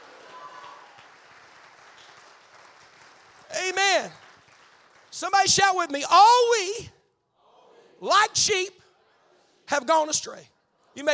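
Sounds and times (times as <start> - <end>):
audience clapping hands: 0.0 - 6.5
speech: 3.6 - 4.2, 5.2 - 7.0, 8.0 - 8.8, 9.7 - 11.1.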